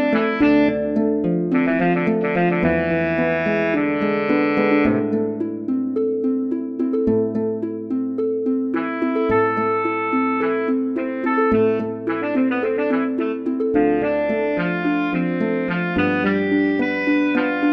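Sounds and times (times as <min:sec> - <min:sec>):
MIDI saxophone and harp duo: 0:00.0 - 0:17.7.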